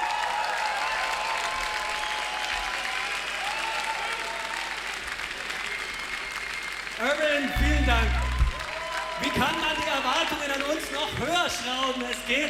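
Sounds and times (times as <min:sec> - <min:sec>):
big crowd audience applause: 0:00.0 - 0:12.4
speech: 0:07.0 - 0:08.2, 0:09.2 - 0:12.4.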